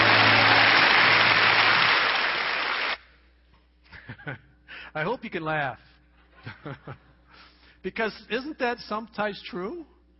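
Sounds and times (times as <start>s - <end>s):
audience applause: 0.0s - 3.0s
speech: 5.0s - 7.1s, 7.8s - 9.9s.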